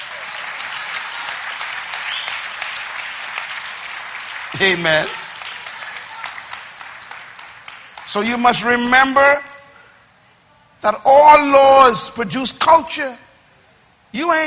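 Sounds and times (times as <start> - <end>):
crowd clapping: 0.0 - 8.9
speech: 4.6 - 5.2, 8.1 - 9.5, 10.8 - 13.2, 14.1 - 14.4.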